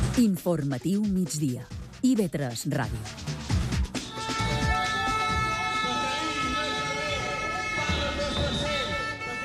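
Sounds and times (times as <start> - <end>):
speech: 0.2 - 3.2
whistles blaring at a teachers' protest outside parliament: 4.1 - 9.3
crowd of protesting teachers shouting: 4.3 - 9.4.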